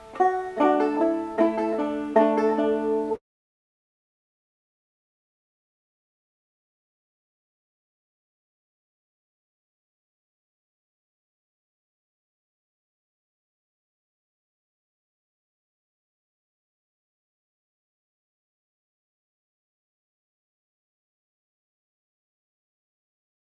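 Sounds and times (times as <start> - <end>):
banjo folk tune: 0.0 - 3.2.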